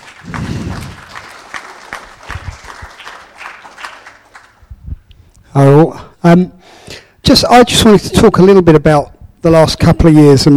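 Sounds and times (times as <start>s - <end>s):
audience applause: 0.0s - 4.6s
speech: 5.6s - 6.6s, 7.3s - 10.5s.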